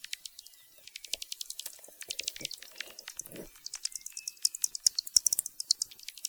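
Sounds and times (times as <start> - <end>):
bat echolocation clicks: 0.0 - 6.2.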